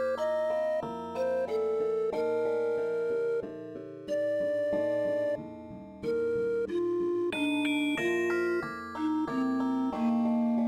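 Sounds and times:
MIDI gamelan flute melody: 0:00.2 - 0:03.5, 0:04.1 - 0:05.4, 0:06.1 - 0:10.5.

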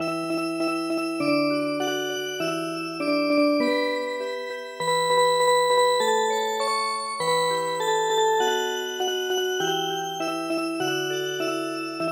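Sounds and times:
music box: 0:00.0 - 0:12.1.

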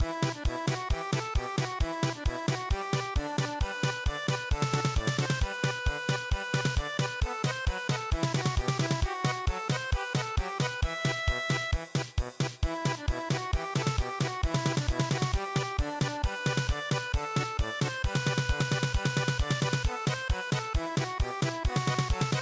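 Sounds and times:
German polka music: 0:00.0 - 0:22.4.

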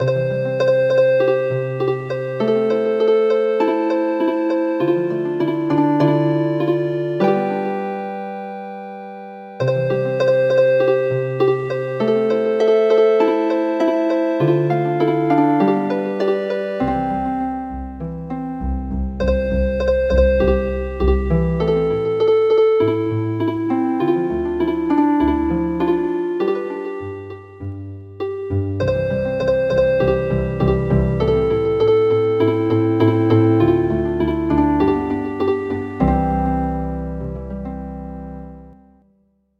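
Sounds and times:
healing harp: 0:00.0 - 0:38.8.

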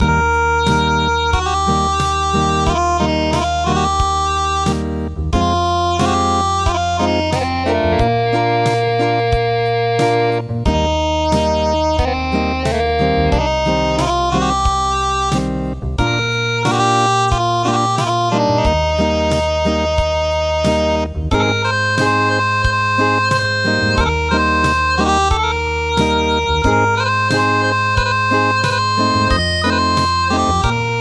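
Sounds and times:
acoustic music: 0:00.0 - 0:31.0.

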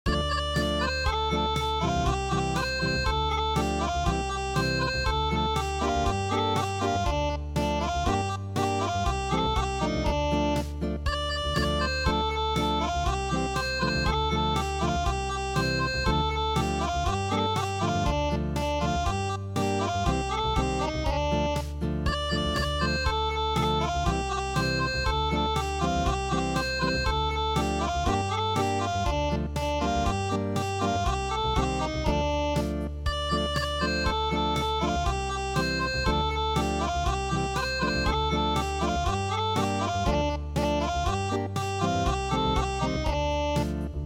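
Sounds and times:
acoustic music: 0:00.1 - 0:44.0.

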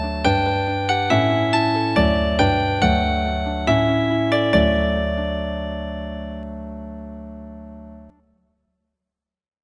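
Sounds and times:
healing harp: 0:00.0 - 0:07.4.

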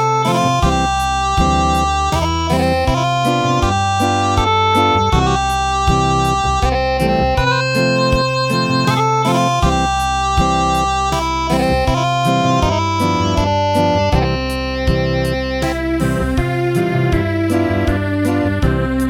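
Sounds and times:
acoustic traditional MIDI lullaby: 0:00.0 - 0:19.0.

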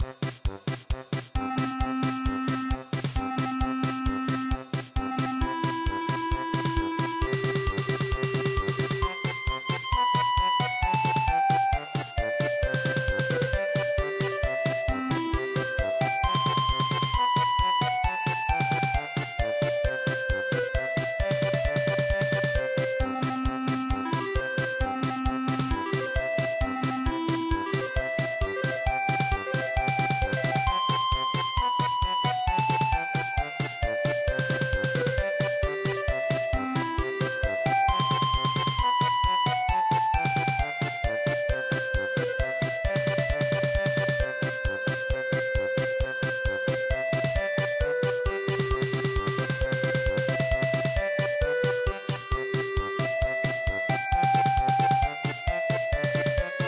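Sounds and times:
polka music: 0:00.0 - 0:56.6.

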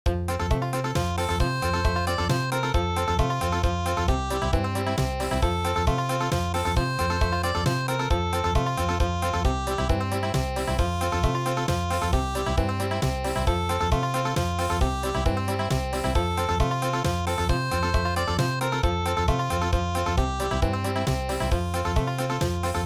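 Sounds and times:
country music: 0:00.1 - 0:22.8.

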